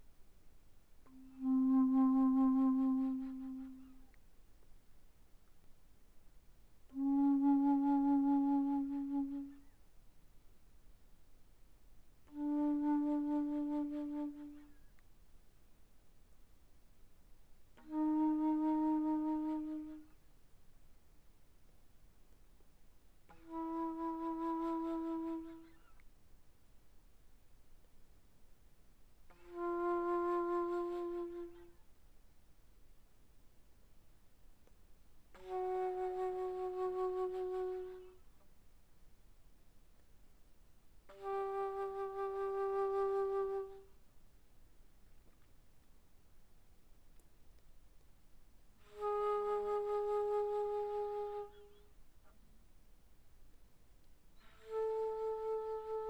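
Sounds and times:
bass flute played pianissimo from C4 to B4: 1.1 - 4.2, 6.9 - 9.8, 12.3 - 14.8, 17.8 - 20.2, 23.3 - 25.8, 29.3 - 31.8, 35.3 - 38.2, 41.1 - 43.9, 48.8 - 51.9, 54.4 - 56.0.

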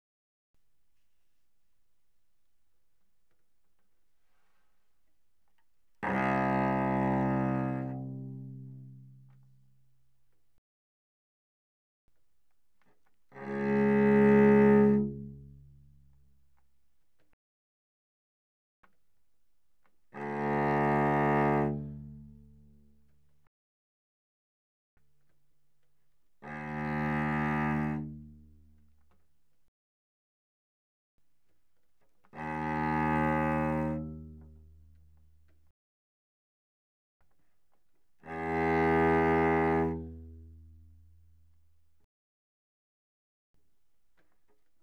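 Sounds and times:
cello bowed arco on the C string: 5.5 - 9.7, 13.0 - 16.2, 19.8 - 23.1, 26.4 - 29.0, 32.2 - 35.3, 38.2 - 41.4.

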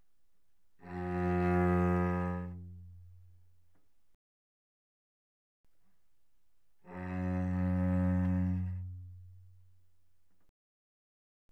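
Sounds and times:
cello played arco pianissimo sul C: 0.8 - 3.4, 6.8 - 9.8.

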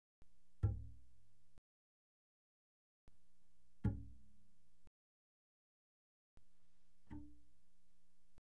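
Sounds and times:
double bass pizzicato pianissimo on the D string: 0.5 - 1.2, 3.7 - 4.5, 6.9 - 7.7.

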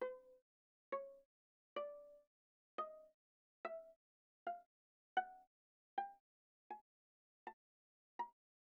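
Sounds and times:
viola pizzicato on the A string: 0.0 - 1.2, 1.8 - 2.2, 2.8 - 6.8, 8.2 - 8.4.

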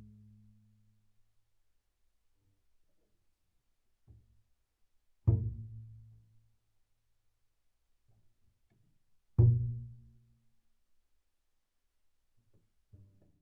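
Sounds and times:
double bass pizzicato on the E string fortissimo: 5.3 - 6.1, 9.4 - 10.1.

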